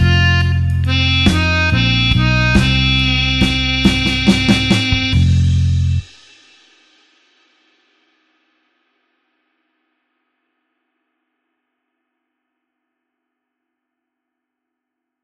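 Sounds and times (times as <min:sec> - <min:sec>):
slow blues harmonica in F: 0:00.0 - 0:06.0.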